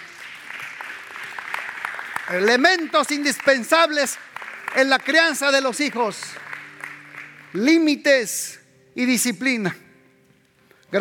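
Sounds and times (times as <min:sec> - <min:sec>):
audience applause: 0:00.0 - 0:07.6
speech: 0:02.3 - 0:06.5, 0:07.5 - 0:09.8.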